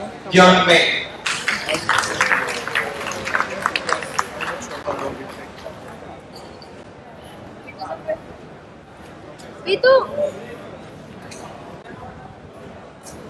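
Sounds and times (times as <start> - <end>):
speech: 0.3 - 1.0, 9.8 - 10.4
audience applause: 1.2 - 5.6.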